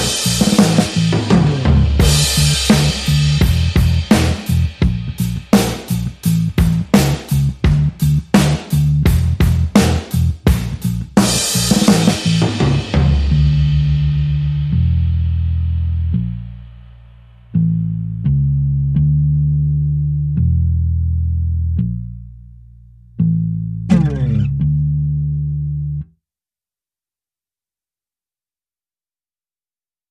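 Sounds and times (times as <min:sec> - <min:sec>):
drums: 0:00.0 - 0:16.8, 0:23.9 - 0:24.5
bass: 0:00.0 - 0:26.2.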